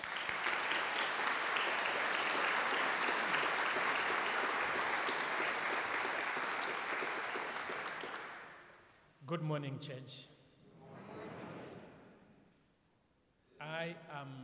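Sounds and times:
church congregation clapping to welcome a visiting synod leader from Malawi: 0.0 - 8.8
speech: 9.3 - 10.4, 13.8 - 14.4.

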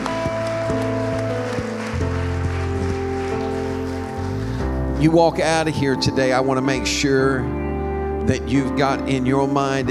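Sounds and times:
audience clapping hands in praise: 0.0 - 5.0
music with sustained chords and a stepping bass line: 0.0 - 9.9
speech: 5.0 - 7.6, 8.2 - 9.9.

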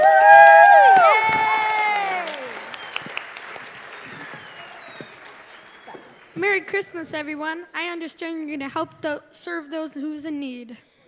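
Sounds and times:
crowd applause at a Christmas outreach evening: 0.0 - 6.8
speech: 6.7 - 10.9.

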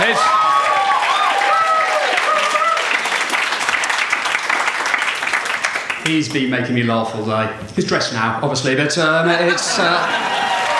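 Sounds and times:
audience applause: 0.0 - 6.1, 9.7 - 10.7
speech: 6.1 - 10.5
laughter: 9.3 - 10.7.

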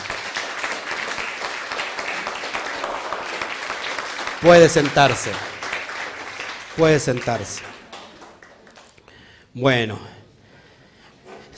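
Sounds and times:
audience applause: 0.0 - 9.0
speech: 4.4 - 5.5, 6.8 - 7.7, 9.6 - 10.2.

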